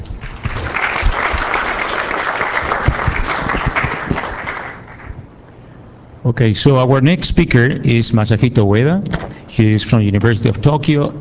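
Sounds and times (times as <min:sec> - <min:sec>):
audience applause: 0:00.2 - 0:05.2
speech: 0:06.3 - 0:11.2.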